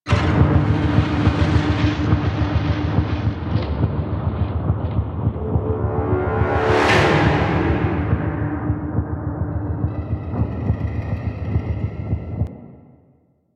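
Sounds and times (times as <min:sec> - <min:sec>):
forest night loop music: 0:00.1 - 0:12.9.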